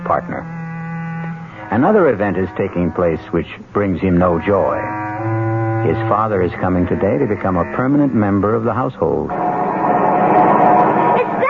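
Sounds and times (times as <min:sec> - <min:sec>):
pickup truck arriving: 0:00.0 - 0:11.4
speech: 0:00.1 - 0:00.6, 0:01.7 - 0:10.6.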